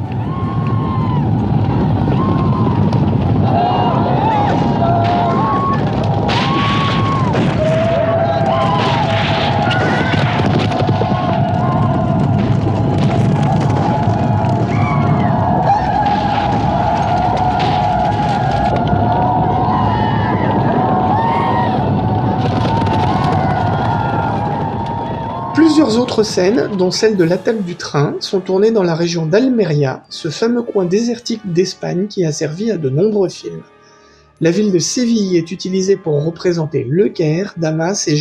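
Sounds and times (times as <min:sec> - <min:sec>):
roar from a large mass of people and animals: 0:00.0 - 0:27.8
speech: 0:26.2 - 0:33.8, 0:34.4 - 0:38.1.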